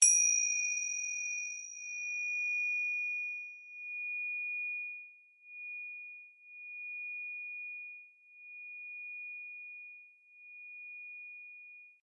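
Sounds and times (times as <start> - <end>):
tingsha chimes: 0.0 - 9.5.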